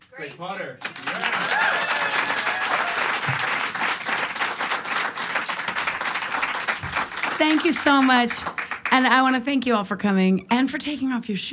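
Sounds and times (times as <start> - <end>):
speech: 0.2 - 2.3, 7.4 - 11.5
audience applauding at an intimate studio concert: 0.6 - 9.4.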